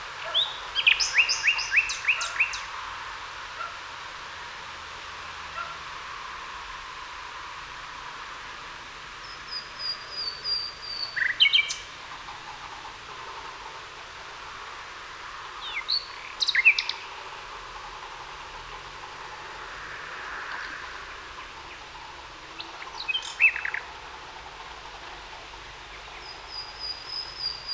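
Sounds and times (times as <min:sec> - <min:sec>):
common nightingale Luscinia megarhynchos singing: 0:00.2 - 0:02.8, 0:09.2 - 0:12.6, 0:15.6 - 0:17.2, 0:21.3 - 0:23.9, 0:25.8 - 0:27.7.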